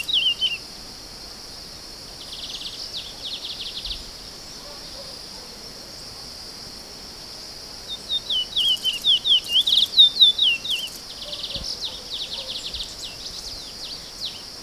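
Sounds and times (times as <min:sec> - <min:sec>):
curio bird singing: 0:00.0 - 0:00.7, 0:02.0 - 0:06.1, 0:07.8 - 0:14.6.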